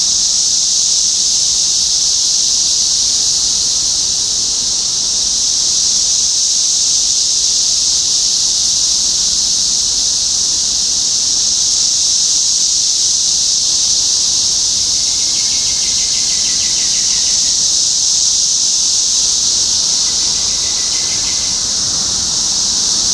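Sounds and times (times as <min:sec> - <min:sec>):
cicada chorus droning: 0:00.0 - 0:23.1.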